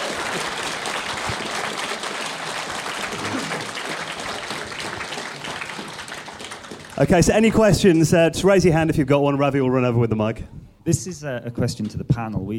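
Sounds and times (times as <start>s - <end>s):
audience applause: 0.0s - 7.7s
speech: 7.0s - 12.5s.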